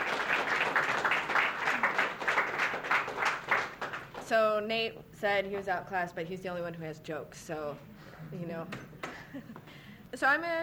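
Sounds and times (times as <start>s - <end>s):
audience applause: 0.0s - 4.2s
speech: 4.3s - 10.6s.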